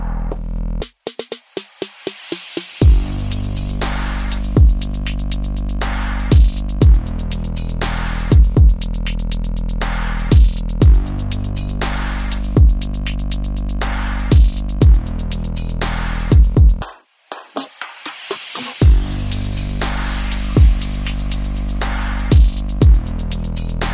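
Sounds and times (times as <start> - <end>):
bass: 0.0 - 0.9, 2.8 - 16.8, 18.8 - 23.9
drums: 0.0 - 23.9
sound effects: 18.7 - 23.3.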